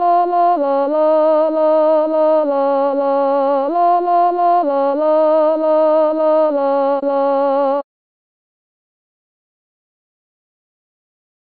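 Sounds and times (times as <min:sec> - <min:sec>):
sopranos singing: 0:00.0 - 0:07.8.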